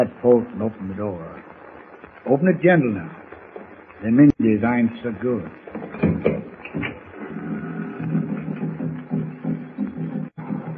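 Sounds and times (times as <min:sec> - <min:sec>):
speech: 0:00.0 - 0:01.5, 0:02.2 - 0:03.2, 0:04.0 - 0:06.4
distant tom-tom drums beating: 0:05.4 - 0:10.7.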